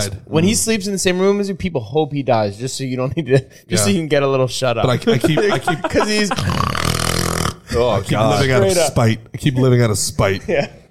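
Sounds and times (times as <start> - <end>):
speech: 0.0 - 7.0, 7.7 - 10.8
laughter: 4.8 - 6.8
person imitating snoring: 6.3 - 8.1.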